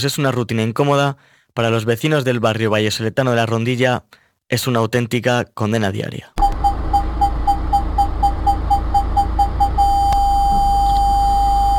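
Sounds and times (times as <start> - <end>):
speech: 0.0 - 6.4
car parking sensor beeping: 6.4 - 11.7.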